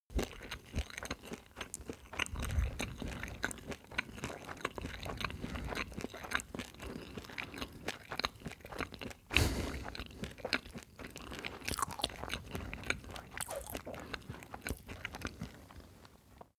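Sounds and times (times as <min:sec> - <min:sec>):
man eating cereal: 0:00.2 - 0:15.6.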